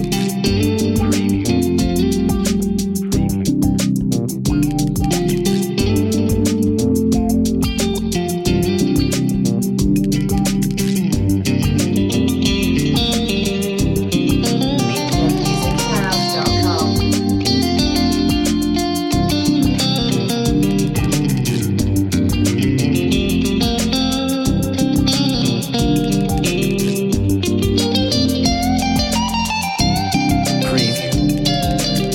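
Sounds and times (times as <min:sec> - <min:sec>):
on-hold music: 0:00.0 - 0:32.1.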